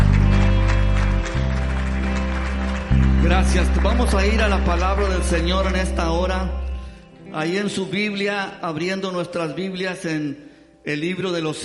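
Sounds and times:
audience applause: 0.0s - 6.2s
speech: 3.3s - 6.7s, 7.3s - 11.6s.

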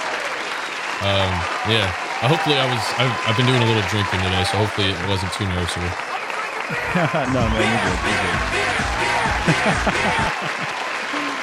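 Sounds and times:
recorded crowd applause sound effect: 0.0s - 11.4s
laughter: 1.0s - 5.9s, 6.6s - 11.4s
speech: 1.0s - 11.2s.

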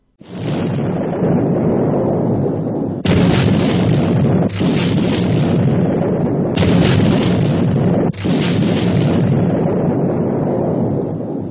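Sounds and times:
bomb explosion: 0.2s - 11.4s.

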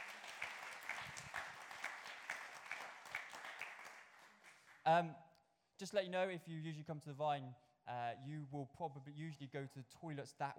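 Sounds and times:
audience applause: 0.0s - 4.8s
speech: 4.9s - 5.2s, 5.8s - 10.5s.

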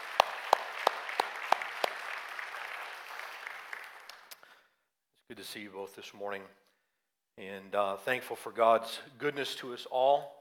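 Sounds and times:
church congregation applauding during a morning service: 0.0s - 4.5s
speech: 5.3s - 6.7s, 7.4s - 10.3s.

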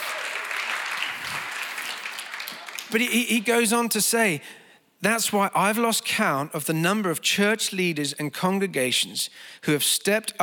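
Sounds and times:
crowd round of applause: 0.0s - 3.0s
speech: 2.9s - 10.4s.

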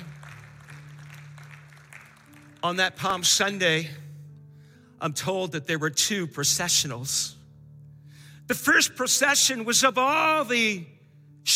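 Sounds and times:
audience clapping: 0.0s - 3.6s
speech: 2.6s - 4.0s, 5.0s - 7.4s, 8.5s - 11.5s.

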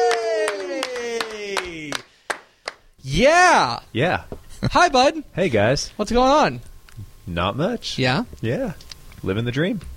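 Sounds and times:
drawn-out cheering voice: 0.0s - 2.1s
a few people clapping for a guest introduced on stage: 0.0s - 2.9s
speech: 3.2s - 6.7s, 7.3s - 9.9s.

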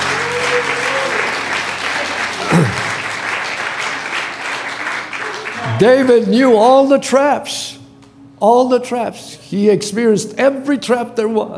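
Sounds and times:
audience applause: 0.0s - 6.3s
speech: 5.8s - 7.8s, 8.4s - 11.5s.

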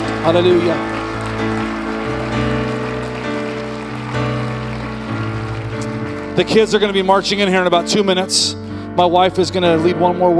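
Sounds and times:
audience applause: 0.0s - 7.8s
sustained musical chords: 0.0s - 9.7s
speech: 0.2s - 1.6s, 6.4s - 10.3s.

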